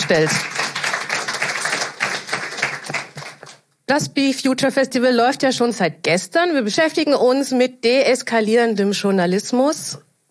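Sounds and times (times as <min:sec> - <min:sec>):
audience applause: 0:00.0 - 0:03.6
speech: 0:00.1 - 0:00.6, 0:03.9 - 0:10.1.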